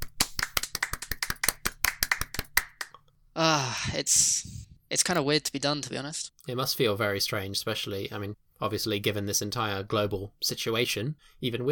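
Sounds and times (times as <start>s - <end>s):
hands clapping near a microphone: 0.0s - 3.0s
speech: 3.4s - 11.6s.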